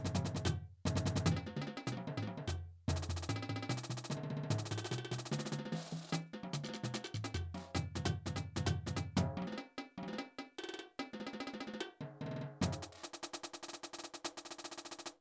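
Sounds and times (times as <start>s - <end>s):
drum break: 0.0s - 15.1s.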